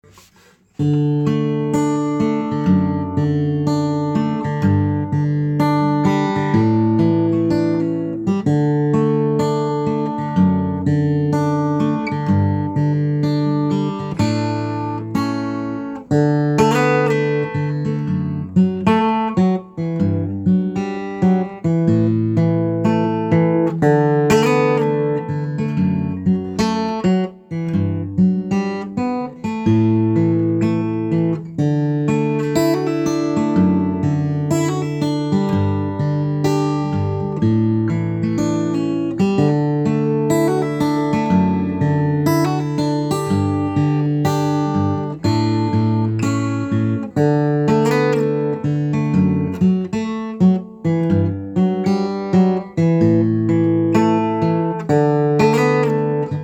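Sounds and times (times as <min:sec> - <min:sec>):
acoustic music: 0:00.0 - 0:56.4.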